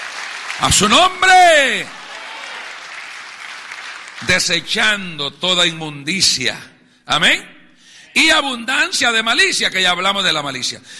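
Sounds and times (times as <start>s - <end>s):
audience applause: 0.0s - 4.5s
speech: 0.6s - 2.0s, 4.2s - 7.5s, 8.2s - 10.9s.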